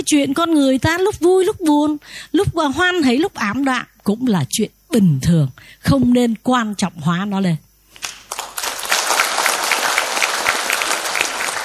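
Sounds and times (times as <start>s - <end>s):
speech: 0.0s - 7.6s
audience applause: 8.0s - 11.6s.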